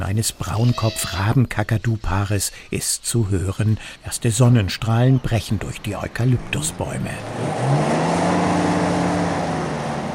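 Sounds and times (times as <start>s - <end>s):
speech: 0.1s - 8.0s
off-road vehicle rumbling over a bumpy red dirt track: 4.8s - 10.1s.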